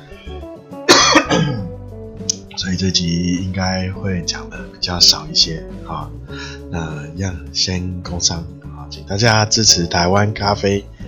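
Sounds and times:
coughing: 0.9 - 1.8
speech: 2.6 - 10.9.

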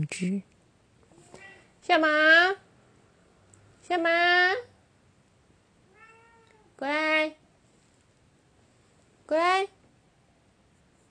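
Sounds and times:
speech: 0.0 - 0.5, 1.8 - 2.6, 3.9 - 4.7, 6.8 - 7.4, 9.3 - 9.8
cat meowing outside: 1.2 - 1.7, 5.9 - 6.7.

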